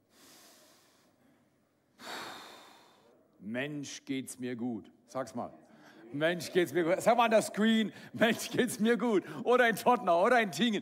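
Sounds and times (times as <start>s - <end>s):
deep breath: 0.0s - 3.2s
speech: 3.4s - 10.8s.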